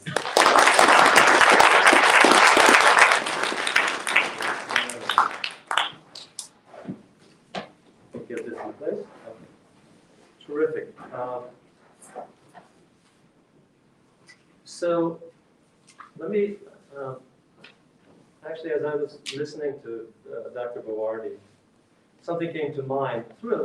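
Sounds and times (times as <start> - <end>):
audience round of applause: 0.0 - 6.4
speech: 19.0 - 21.6, 22.2 - 23.6.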